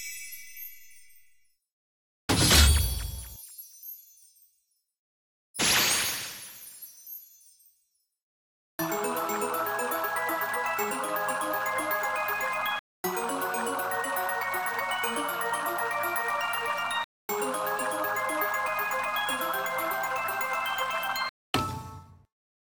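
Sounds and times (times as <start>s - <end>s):
base game sound: 2.3s - 3.4s, 8.8s - 22.3s.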